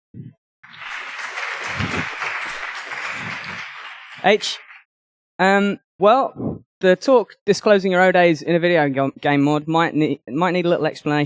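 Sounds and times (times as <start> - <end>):
warm applause: 0.6 - 4.8
speech: 4.2 - 4.7, 5.4 - 11.2.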